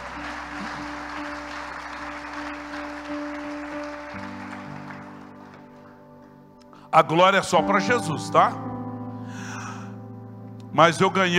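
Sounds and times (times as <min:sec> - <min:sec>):
audience applauding: 0:00.0 - 0:06.4
organ-like tone: 0:00.0 - 0:09.1
speech: 0:06.9 - 0:08.7, 0:10.8 - 0:11.3.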